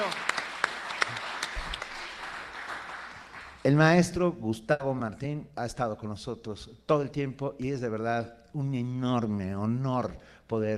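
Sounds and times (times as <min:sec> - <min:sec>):
applause: 0:00.0 - 0:03.9
speech: 0:03.6 - 0:10.7.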